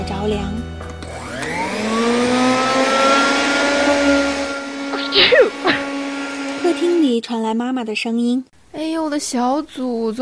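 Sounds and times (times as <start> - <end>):
speech: 0.2 - 0.6, 7.2 - 10.2
hair dryer blowing: 1.0 - 7.2.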